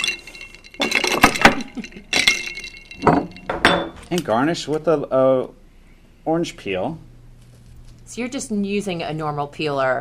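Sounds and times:
spoon stirring a drink in a glass: 0:00.0 - 0:01.2, 0:01.8 - 0:03.4
speech: 0:04.1 - 0:05.6, 0:06.2 - 0:07.1, 0:08.1 - 0:09.9.

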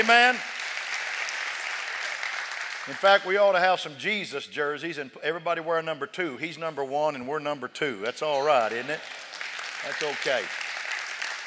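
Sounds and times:
speech: 0:00.0 - 0:00.6, 0:02.8 - 0:10.6
crowd clapping: 0:00.0 - 0:03.6, 0:08.3 - 0:11.4.

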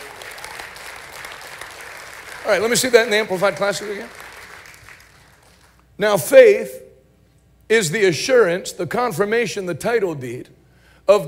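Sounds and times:
audience clapping hands: 0:00.0 - 0:05.9
speech: 0:02.5 - 0:04.2, 0:06.0 - 0:06.8, 0:07.7 - 0:11.2.

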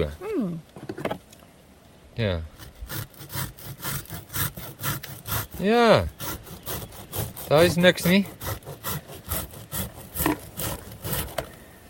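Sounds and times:
speech: 0:00.0 - 0:00.7, 0:02.2 - 0:03.4, 0:05.6 - 0:06.2, 0:07.5 - 0:08.4
blade sawing off the burnt part: 0:02.6 - 0:11.6.

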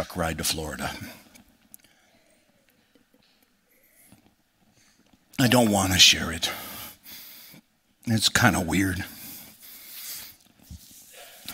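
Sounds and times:
speech: 0:00.0 - 0:01.2, 0:05.4 - 0:06.7, 0:08.0 - 0:09.2
person sneezing: 0:11.1 - 0:11.5.

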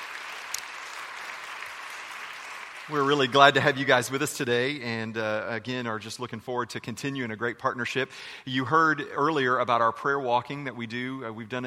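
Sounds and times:
audience applause welcoming the administration of Landon Middle School: 0:00.0 - 0:03.9
speech: 0:02.9 - 0:11.6.

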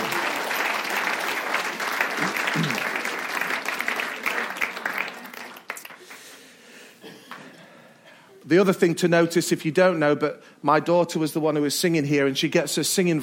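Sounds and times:
audience applause: 0:00.0 - 0:06.5
speech: 0:08.5 - 0:13.2.

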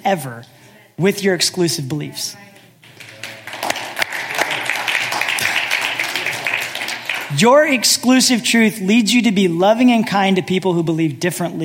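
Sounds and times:
speech: 0:00.0 - 0:02.5, 0:07.3 - 0:11.6
audience clapping: 0:02.8 - 0:07.8.

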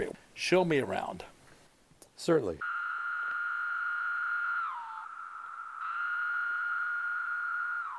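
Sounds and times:
speech: 0:00.0 - 0:01.4, 0:02.2 - 0:02.7
cicadas singing in city park trees: 0:02.6 - 0:07.9.

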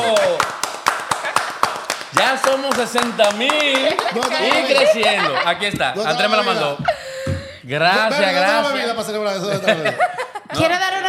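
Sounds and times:
hand clapping: 0:00.0 - 0:06.0
speech: 0:02.3 - 0:07.0, 0:07.6 - 0:11.0
laughter: 0:03.6 - 0:08.1, 0:09.3 - 0:10.7.

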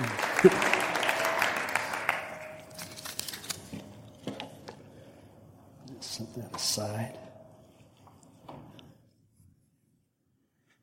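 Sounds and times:
audience applause welcoming a speaker: 0:00.0 - 0:02.7
speech: 0:00.4 - 0:00.7, 0:06.4 - 0:07.2.

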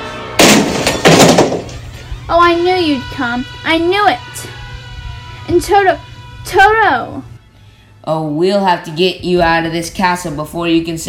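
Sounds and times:
door being broken open: 0:00.4 - 0:02.0
speech: 0:02.3 - 0:04.6, 0:05.5 - 0:07.3, 0:08.0 - 0:11.0.

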